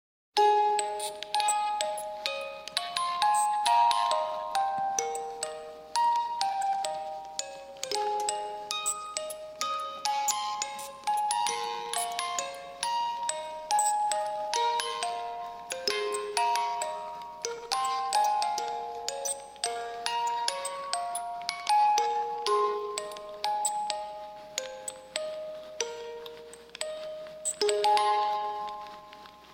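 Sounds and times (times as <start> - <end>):
music box: 0.4 - 29.5.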